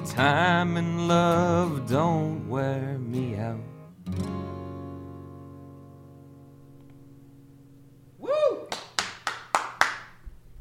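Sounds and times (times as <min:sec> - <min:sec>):
speech: 0:00.1 - 0:04.5
one person clapping: 0:08.5 - 0:10.2.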